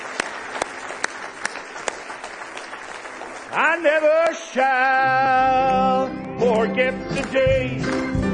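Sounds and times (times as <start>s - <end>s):
audience hand clapping: 0.0s - 4.5s, 6.5s - 8.2s
speech: 3.8s - 5.8s.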